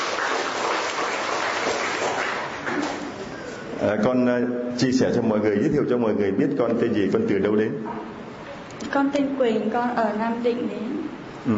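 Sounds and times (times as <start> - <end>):
audience applause: 0.0 - 3.1
speech: 3.8 - 8.1, 8.9 - 11.5.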